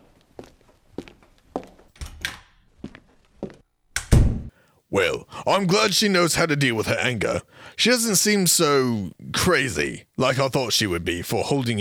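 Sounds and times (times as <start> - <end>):
footsteps leaving the room: 0.0 - 3.7
speech: 5.0 - 11.7.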